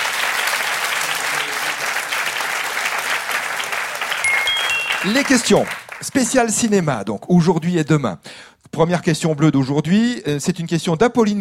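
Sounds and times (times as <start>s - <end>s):
audience applause: 0.0s - 6.4s
speech: 5.0s - 11.3s.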